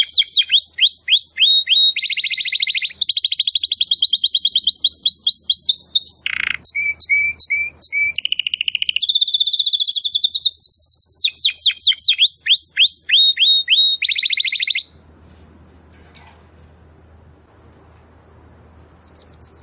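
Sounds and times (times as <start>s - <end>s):
domestic canary trilling: 0.0s - 15.0s, 19.0s - 19.6s.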